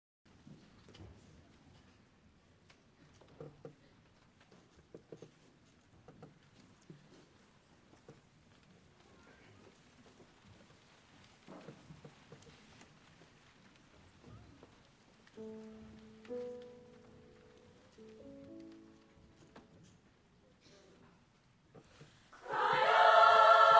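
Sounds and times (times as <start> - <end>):
mixed choir singing: 22.4 - 23.7.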